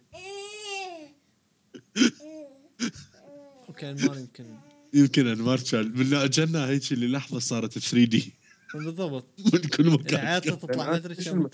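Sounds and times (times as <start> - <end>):
young daughter babbling through audio feedback: 0.1 - 1.2, 2.2 - 5.0
young daughter whimpering: 2.0 - 4.9
speech: 3.8 - 11.5.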